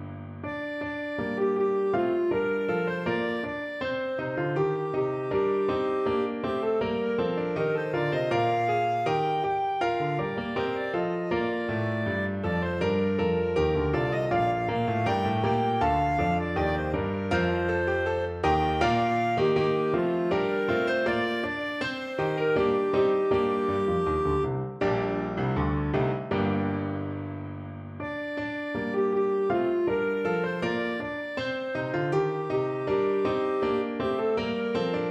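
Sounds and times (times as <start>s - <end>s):
clarinet: 0.1s - 26.7s, 27.9s - 35.1s.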